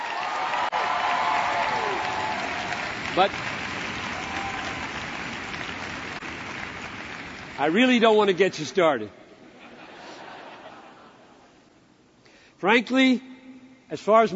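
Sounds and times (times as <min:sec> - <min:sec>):
audience clapping: 0:00.0 - 0:08.3
speech: 0:03.2 - 0:03.5, 0:07.6 - 0:09.2, 0:12.6 - 0:13.3, 0:13.9 - 0:14.3
laughter: 0:09.4 - 0:11.6.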